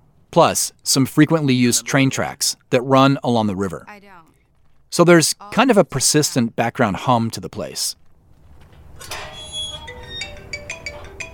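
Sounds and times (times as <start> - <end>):
speech: 0.4 - 4.2, 4.9 - 8.0, 9.0 - 9.2
metal gate opening and closing: 9.0 - 11.3.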